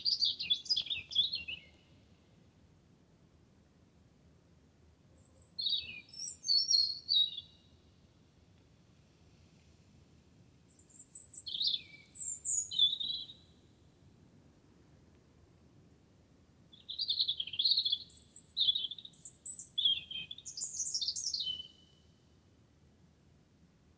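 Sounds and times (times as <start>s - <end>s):
wren singing: 0.0s - 1.8s, 10.7s - 13.6s, 16.7s - 21.9s.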